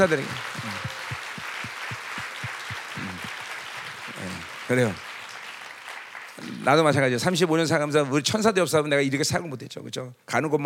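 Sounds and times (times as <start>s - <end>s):
speech: 0.0s - 0.5s, 4.7s - 5.1s, 6.6s - 10.6s
audience applause: 0.0s - 6.9s
low thumping beat: 0.6s - 3.3s.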